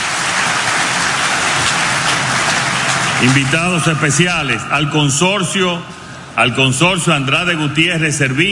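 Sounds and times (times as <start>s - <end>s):
crowd applauding: 0.0s - 5.5s
speech: 3.2s - 8.5s.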